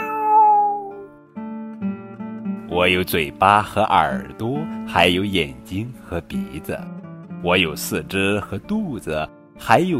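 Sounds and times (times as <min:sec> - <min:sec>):
cat meowing: 0:00.0 - 0:01.1
speech: 0:02.8 - 0:09.9.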